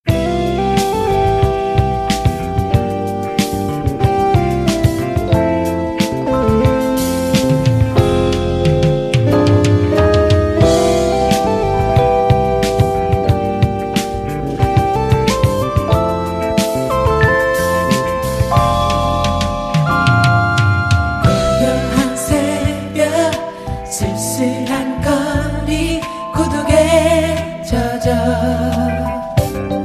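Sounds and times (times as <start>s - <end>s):
funky Korean soul music: 0.0s - 29.8s.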